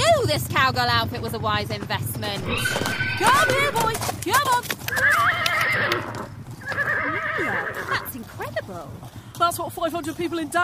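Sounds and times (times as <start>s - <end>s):
speech: 0.4s - 6.3s, 7.1s - 10.6s
horse neighing: 2.4s - 4.0s, 4.9s - 8.2s.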